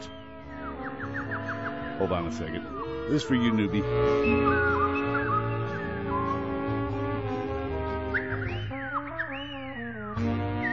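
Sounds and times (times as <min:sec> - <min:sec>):
instrumental backing music: 0:00.0 - 0:10.7
speech: 0:02.0 - 0:05.4
woman whistling a lilting melody played from a record: 0:04.2 - 0:06.4, 0:08.1 - 0:10.7.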